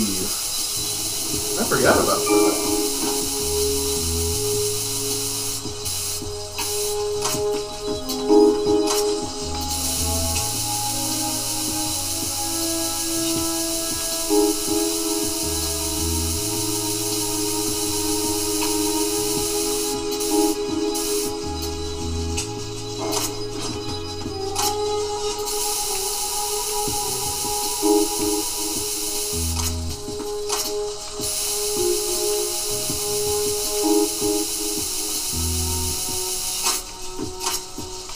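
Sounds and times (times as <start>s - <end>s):
coolant spraying in a video game: 0.0s - 38.1s
repeating low synth tones: 0.0s - 38.1s
speech: 1.6s - 2.8s.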